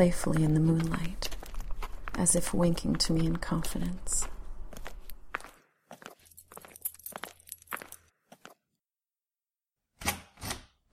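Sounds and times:
speech: 0:00.0 - 0:01.3, 0:02.2 - 0:04.4
footsteps approaching a front step: 0:00.0 - 0:08.6.

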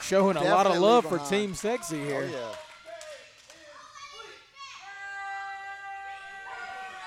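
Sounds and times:
speech: 0:00.1 - 0:02.6
noisy kids in an arena crowd: 0:03.6 - 0:07.0.

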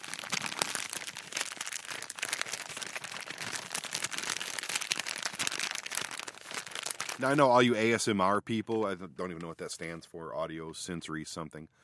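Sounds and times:
plastic candy bag crinkling in a movie theater: 0:00.0 - 0:07.7
speech: 0:07.2 - 0:11.8.

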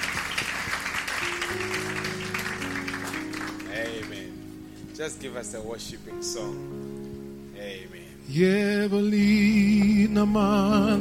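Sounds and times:
crowd clapping: 0:00.0 - 0:04.4
sustained keyboard or organ notes: 0:00.0 - 0:10.9
speech: 0:05.0 - 0:07.0, 0:08.3 - 0:10.9.

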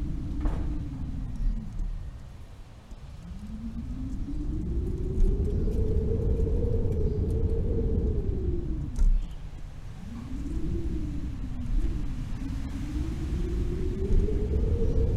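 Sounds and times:
howling wind across open fields, mountains and forests: 0:00.0 - 0:15.1.

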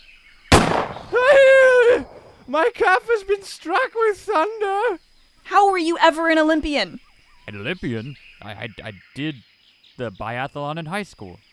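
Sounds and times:
harpoon gun firing: 0:00.5 - 0:01.4
speech: 0:02.5 - 0:11.5.

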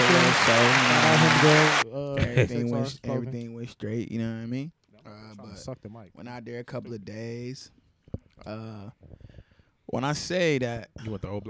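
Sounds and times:
applause sound effect: 0:00.0 - 0:01.8
speech: 0:00.3 - 0:07.8, 0:08.4 - 0:09.3, 0:09.9 - 0:11.4.

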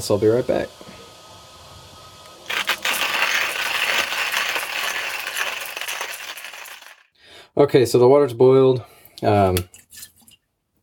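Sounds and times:
speech: 0:00.0 - 0:00.9, 0:07.6 - 0:09.8
hand grinder grinding coffee: 0:02.5 - 0:07.0.

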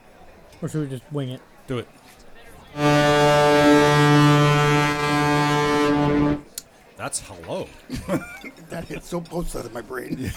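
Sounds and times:
speech: 0:00.6 - 0:03.9, 0:07.1 - 0:10.3
tugboat horn blast: 0:02.8 - 0:06.5.

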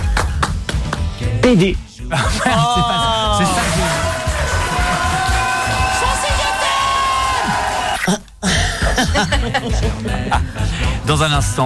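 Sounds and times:
crowd clapping: 0:00.0 - 0:01.2, 0:03.4 - 0:08.0
speech: 0:01.4 - 0:03.5, 0:09.2 - 0:11.6
laughter: 0:02.1 - 0:05.8, 0:07.3 - 0:11.0
crowd whooping and cheering: 0:02.7 - 0:08.1.

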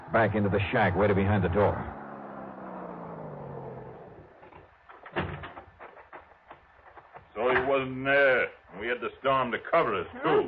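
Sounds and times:
hot rod coming down soggy wagon road: 0:00.0 - 0:07.4
speech: 0:00.1 - 0:02.0, 0:07.8 - 0:10.4.

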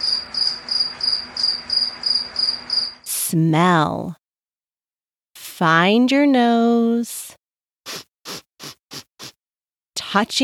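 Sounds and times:
cricket chirping: 0:00.0 - 0:03.1
speech: 0:03.3 - 0:04.2, 0:05.6 - 0:07.2, 0:10.1 - 0:10.4.

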